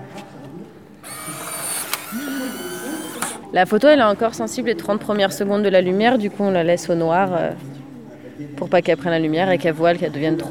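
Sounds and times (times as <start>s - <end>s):
instant film printer motor exposing an iPad image onto Polaroid film: 0.9s - 3.4s
brief click: 1.0s - 3.4s
speech: 3.5s - 7.7s, 8.4s - 10.4s.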